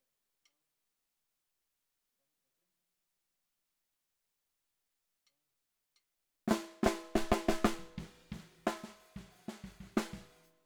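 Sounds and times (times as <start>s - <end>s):
bottom snare drum: 6.5s - 10.5s.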